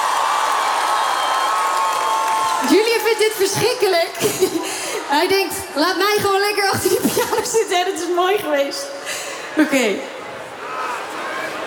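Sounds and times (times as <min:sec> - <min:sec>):
concert audience clapping for a piano player: 0:00.0 - 0:04.2
concert crowd cheering for a piano player: 0:00.0 - 0:06.2, 0:10.2 - 0:11.6
speech: 0:02.6 - 0:09.0, 0:09.6 - 0:10.1.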